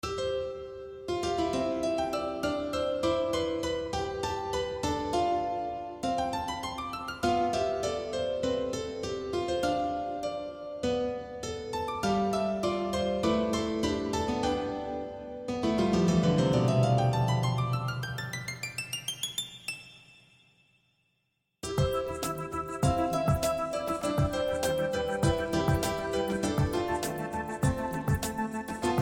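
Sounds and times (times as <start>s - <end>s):
piano: 0.0s - 19.5s, 21.6s - 29.0s.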